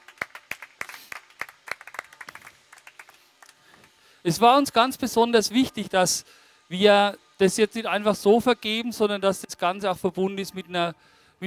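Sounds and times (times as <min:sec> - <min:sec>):
audience applause: 0:00.0 - 0:04.0
speech: 0:04.2 - 0:11.4.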